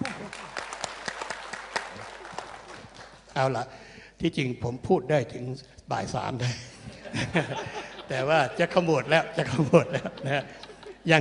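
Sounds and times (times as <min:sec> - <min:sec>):
audience applause: 0:00.0 - 0:03.3
speech: 0:03.4 - 0:11.2
laughter: 0:06.4 - 0:11.2.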